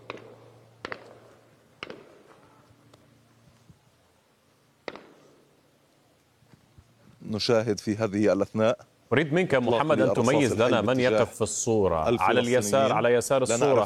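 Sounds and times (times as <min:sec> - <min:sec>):
live gunshots fired toward young men: 0:00.0 - 0:02.6, 0:04.8 - 0:05.5
speech: 0:07.3 - 0:13.8.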